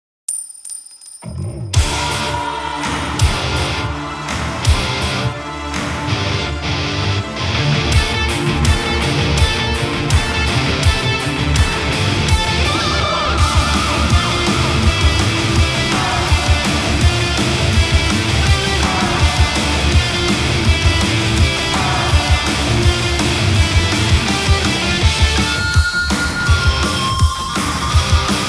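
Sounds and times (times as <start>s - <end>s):
taiko disco music: 1.8s - 6.4s, 7.6s - 28.4s.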